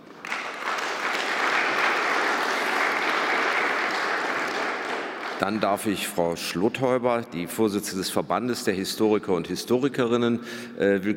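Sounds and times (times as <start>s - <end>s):
audience applause: 0.0s - 5.6s
speech: 5.4s - 11.1s.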